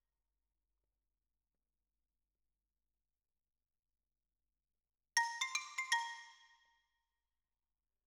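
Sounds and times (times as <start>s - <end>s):
xylophone: 5.2s - 6.5s.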